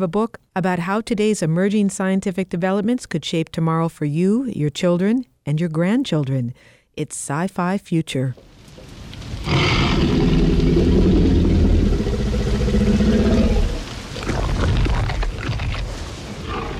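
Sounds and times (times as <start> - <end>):
speech: 0.0 - 8.5
T-Rex dinosaur roar from film: 9.4 - 15.5, 16.4 - 16.7.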